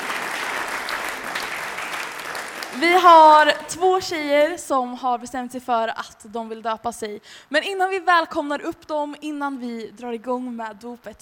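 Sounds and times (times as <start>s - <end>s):
audience applauding: 0.0s - 3.4s
speech: 2.8s - 11.2s.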